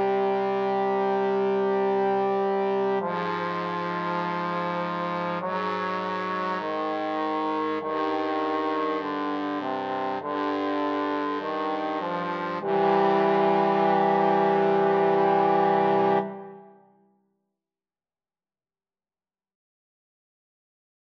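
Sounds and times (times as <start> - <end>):
trombone trio playing an aequale: 0.0 - 16.7.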